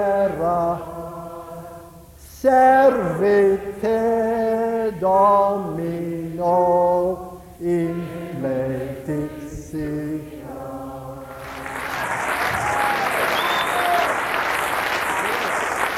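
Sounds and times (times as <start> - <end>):
speech: 0.0 - 1.2, 2.4 - 10.3
sung chant: 0.0 - 13.8
audience applause: 11.4 - 15.9.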